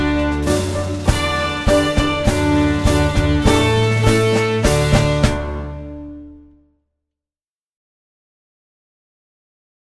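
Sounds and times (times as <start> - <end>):
march music: 0.0 - 6.6.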